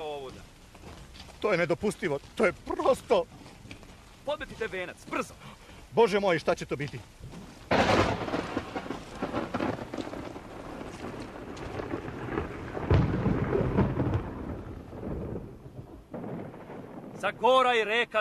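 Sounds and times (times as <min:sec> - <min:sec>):
steady hissing rain pouring down: 0:00.0 - 0:18.1
speech: 0:01.4 - 0:03.4, 0:04.2 - 0:07.2, 0:17.2 - 0:18.1
deep rumbles of thunder: 0:07.7 - 0:18.0.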